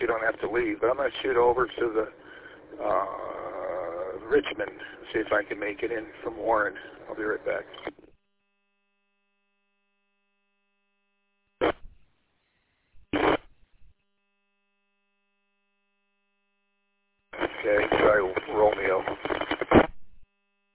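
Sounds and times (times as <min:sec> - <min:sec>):
bursts of radio static breaking squelch: 0:00.0 - 0:08.1, 0:11.6 - 0:12.0, 0:13.0 - 0:13.6, 0:17.4 - 0:20.1
speech: 0:00.1 - 0:03.4, 0:04.2 - 0:08.0.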